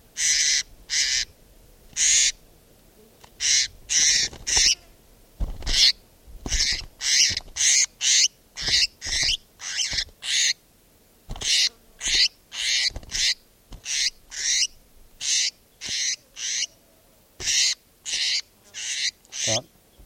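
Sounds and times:
recorded bird calls: 0:00.2 - 0:01.3, 0:02.0 - 0:02.4, 0:03.4 - 0:04.8, 0:05.7 - 0:10.6, 0:11.4 - 0:16.8, 0:17.4 - 0:20.0.

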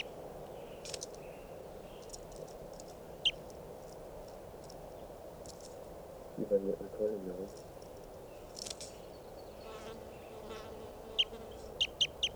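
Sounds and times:
speech: 0:06.4 - 0:07.7
bird chirps outdoors: 0:09.0 - 0:12.3.

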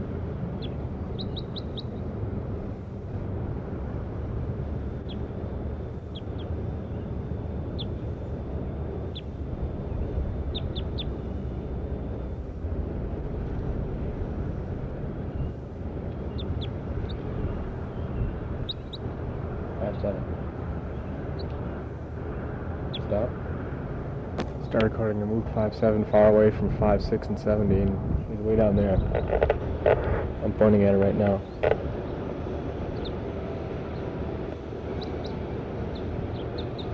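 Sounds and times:
steady low rumble: 0:00.0 - 0:36.9
bird chirps recorded outdoors: 0:00.6 - 0:02.0, 0:09.1 - 0:11.2, 0:15.3 - 0:19.0, 0:32.9 - 0:33.2, 0:35.0 - 0:36.9
speech: 0:24.8 - 0:31.8.

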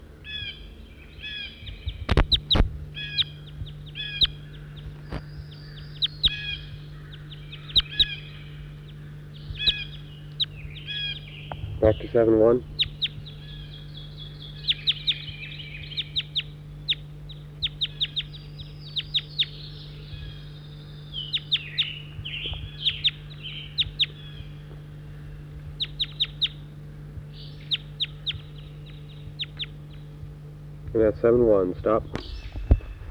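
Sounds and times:
several birds calling in sharp high chirps and clicks: 0:00.0 - 0:33.0
steady low hum: 0:00.0 - 0:33.0
speech: 0:11.9 - 0:12.7, 0:31.2 - 0:32.2.

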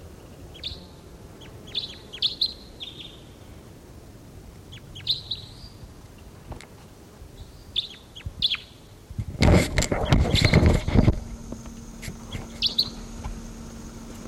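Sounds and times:
wild bird calling: 0:00.0 - 0:03.7, 0:04.6 - 0:06.4, 0:07.4 - 0:08.9, 0:09.8 - 0:14.2.

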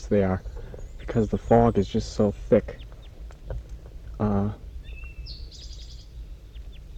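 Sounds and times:
low buzzy wild bird call: 0:00.0 - 0:06.9
low rumble: 0:00.0 - 0:06.9
speech: 0:00.1 - 0:02.9, 0:04.2 - 0:04.6.

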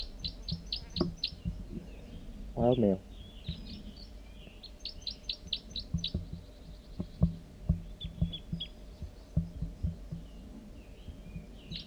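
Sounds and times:
bird calls: 0:00.0 - 0:11.8
speech: 0:02.6 - 0:03.1.

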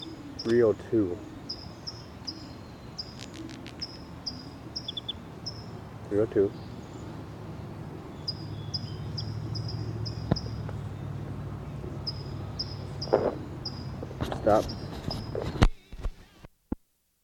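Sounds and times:
bird chirping: 0:00.0 - 0:15.6
speech: 0:00.4 - 0:01.3, 0:06.1 - 0:06.6, 0:14.4 - 0:14.8.

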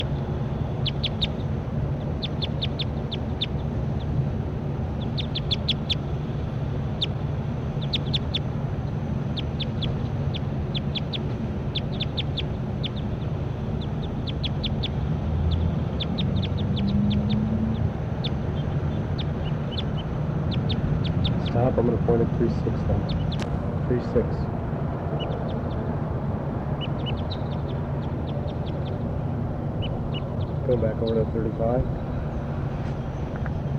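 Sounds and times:
bird chirping: 0:00.0 - 0:33.7
low rumble: 0:00.0 - 0:33.7.

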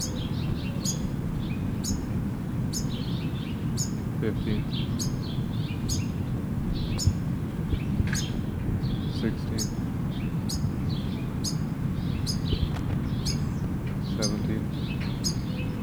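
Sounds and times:
finches chirping: 0:00.0 - 0:15.8
speech: 0:04.2 - 0:05.1.

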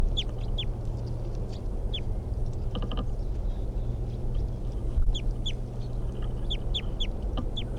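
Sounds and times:
steady low rumbling hum: 0:00.0 - 0:07.7
wild bird calling with short high downward chirps: 0:00.0 - 0:07.7.

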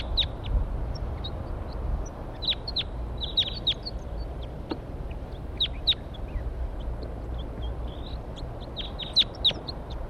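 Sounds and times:
wild birds calling: 0:00.0 - 0:10.0.

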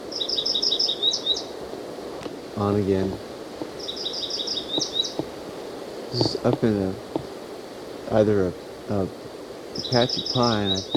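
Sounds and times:
dark-eyed junco calls: 0:00.0 - 0:01.6, 0:03.6 - 0:05.4, 0:06.2 - 0:07.3, 0:09.7 - 0:10.9
hiss: 0:00.0 - 0:10.9
speech: 0:02.6 - 0:03.3, 0:06.1 - 0:07.1, 0:08.1 - 0:09.2, 0:09.8 - 0:10.9.

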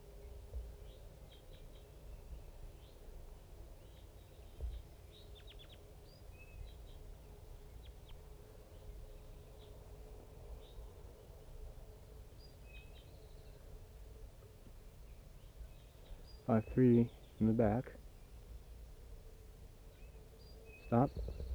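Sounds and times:
speech: 0:16.5 - 0:18.0, 0:20.9 - 0:21.4
crossbills calling: 0:20.8 - 0:21.5.

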